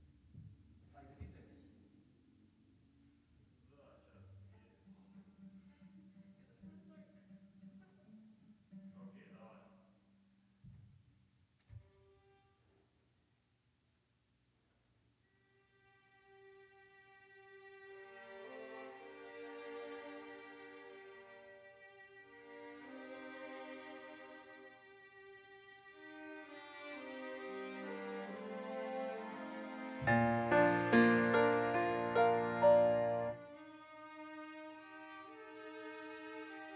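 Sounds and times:
piano: 28.4s - 33.8s.

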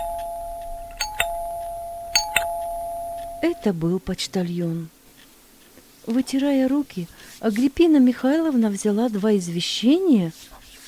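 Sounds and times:
doorbell ringing at an apartment: 0.0s - 3.7s
speech: 3.4s - 5.0s, 6.0s - 10.6s.

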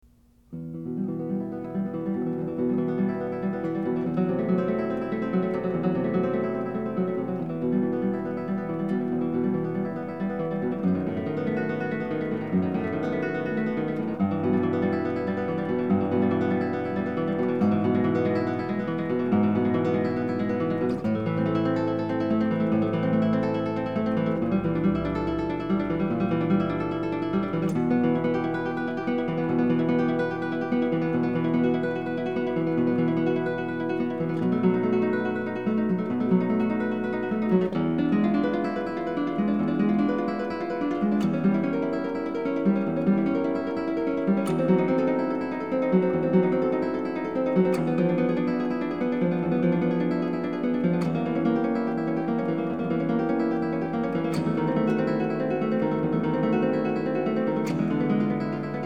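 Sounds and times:
guitar etude: 0.0s - 58.8s.

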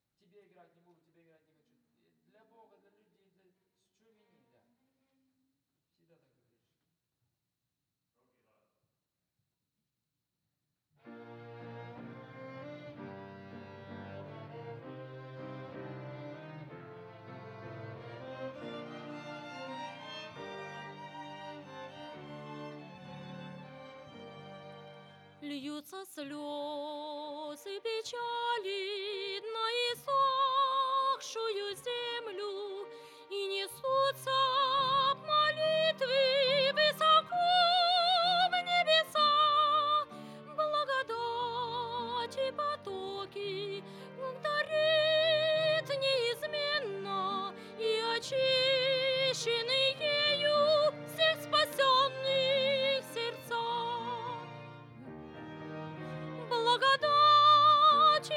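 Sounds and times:
vocals: 25.4s - 54.7s, 56.1s - 58.3s.

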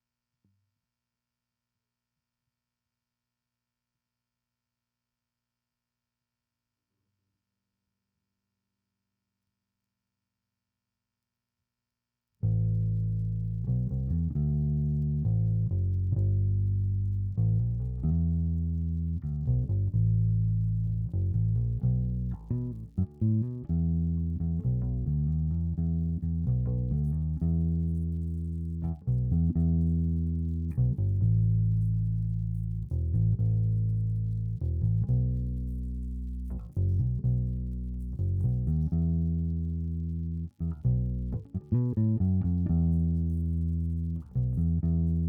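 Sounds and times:
bass: 12.4s - 45.2s.

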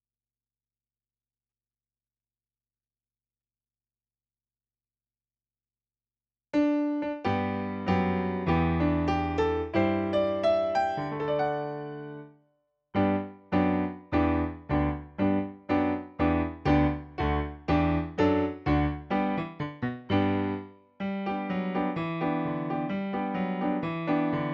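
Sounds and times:
piano: 6.5s - 24.5s.

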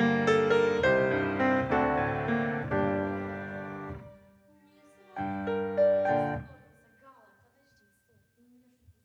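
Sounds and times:
piano: 0.0s - 7.1s.

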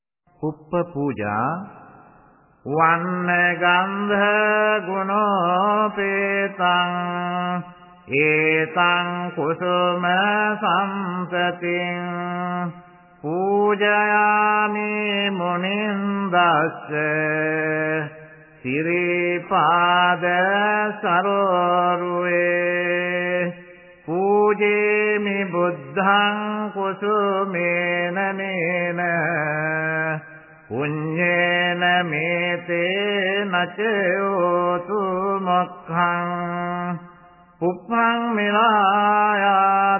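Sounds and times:
chanting: 2.7s - 39.9s.

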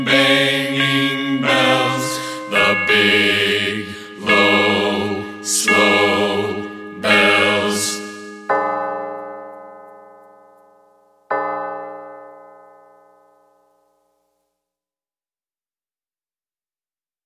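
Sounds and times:
bells pealing: 0.0s - 13.5s.

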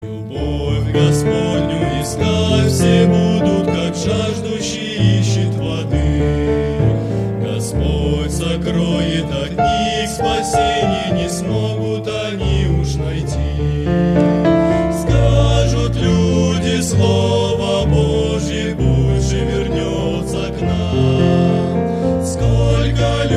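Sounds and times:
person singing: 0.0s - 6.8s, 7.4s - 23.3s.

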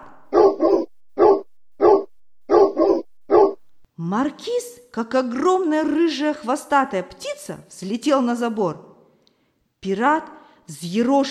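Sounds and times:
dog barking loudly: 0.0s - 3.9s
speech: 4.0s - 8.9s, 9.8s - 11.2s.

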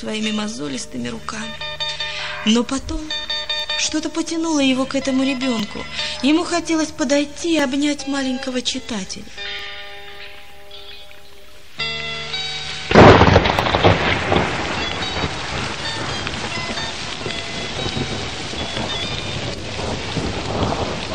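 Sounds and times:
speech: 0.0s - 1.6s, 2.4s - 9.5s
heavy rain: 0.8s - 8.6s, 9.3s - 21.1s
thunderclap during rainstorm: 12.9s - 21.1s.

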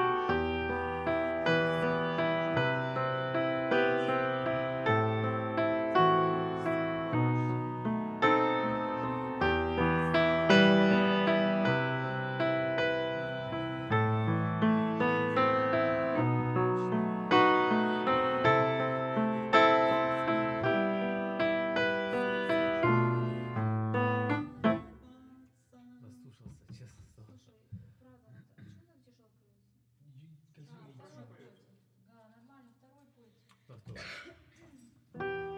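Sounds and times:
piano: 0.0s - 25.2s, 35.1s - 35.5s.

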